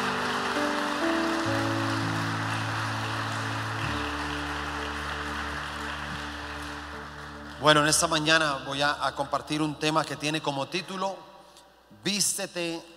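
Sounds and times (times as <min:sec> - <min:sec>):
audience applause: 0:00.0 - 0:08.8
sustained low keyboard chords: 0:00.0 - 0:09.8
speech: 0:07.6 - 0:11.3, 0:12.0 - 0:12.9.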